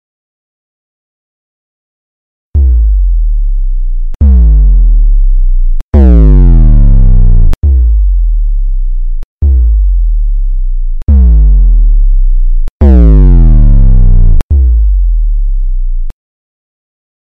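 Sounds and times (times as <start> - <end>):
bass: 2.6 - 16.2.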